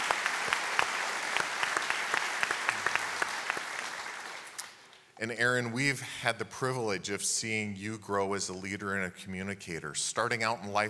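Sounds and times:
audience applause: 0:00.0 - 0:04.6
speech: 0:05.2 - 0:10.8.

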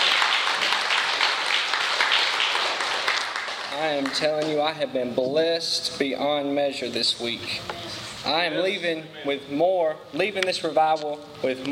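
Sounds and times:
audience hand clap of praise: 0:00.0 - 0:04.7
speech: 0:03.8 - 0:11.6.

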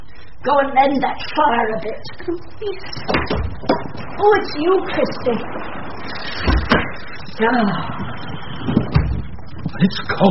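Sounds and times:
speech: 0:00.4 - 0:05.8, 0:07.4 - 0:08.8, 0:09.8 - 0:10.3
door opening: 0:03.0 - 0:04.2, 0:06.3 - 0:07.2, 0:08.0 - 0:09.8.

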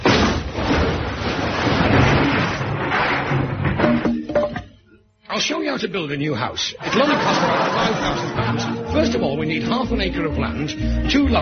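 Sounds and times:
bricks knocked out of a wall for a serving hatch: 0:00.0 - 0:04.7
speech: 0:05.4 - 0:11.3
laughter: 0:06.8 - 0:09.4.

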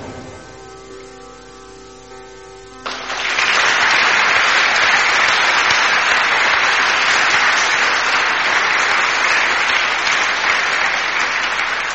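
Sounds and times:
audience applause after live devotional music: 0:02.8 - 0:11.9.

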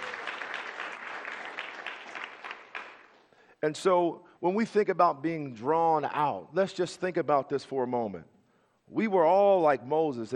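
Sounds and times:
audience clapping hands: 0:00.0 - 0:03.5
speech: 0:03.6 - 0:08.3, 0:08.9 - 0:10.3.

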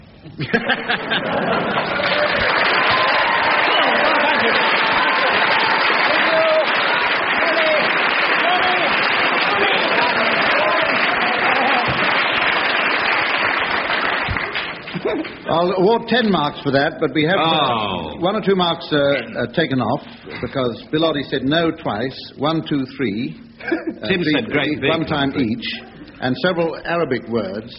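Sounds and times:
laughter: 0:00.2 - 0:06.6, 0:08.4 - 0:12.4, 0:14.8 - 0:15.4, 0:23.6 - 0:26.0
speech: 0:00.4 - 0:02.4, 0:04.4 - 0:04.7, 0:15.1 - 0:27.7
studio audience applause: 0:00.8 - 0:15.5.

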